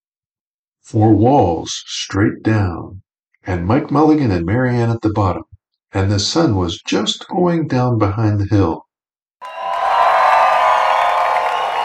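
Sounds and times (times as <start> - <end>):
speech: 0.9 - 8.8
crowd cheering hooray: 9.4 - 11.8.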